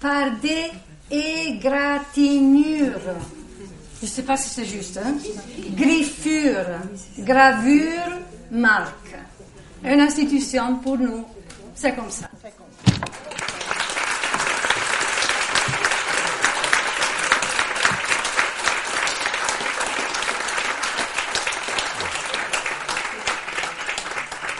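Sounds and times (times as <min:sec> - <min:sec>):
speech: 0:00.0 - 0:12.8
audience applause: 0:13.0 - 0:24.5.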